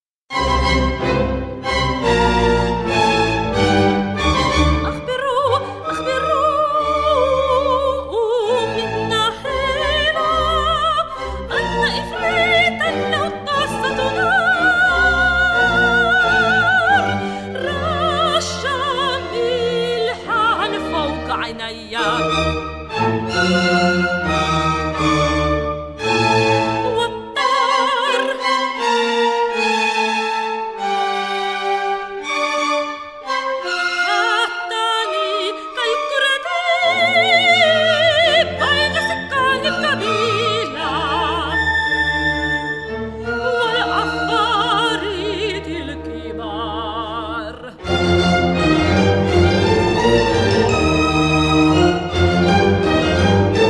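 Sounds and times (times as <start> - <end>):
symphony orchestra: 0.3 - 53.6
soprano singing in Arabic: 0.6 - 53.6.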